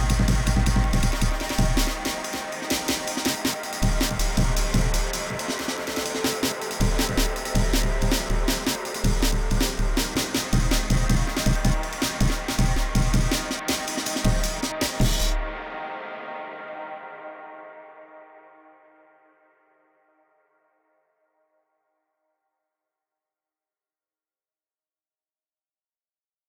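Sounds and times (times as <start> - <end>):
jungle breakbeat: 0.0 - 15.5.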